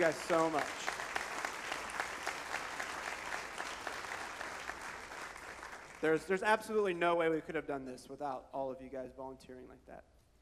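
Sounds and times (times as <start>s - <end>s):
speech: 0.0s - 0.9s, 6.0s - 10.1s
crowd applause: 0.0s - 6.0s.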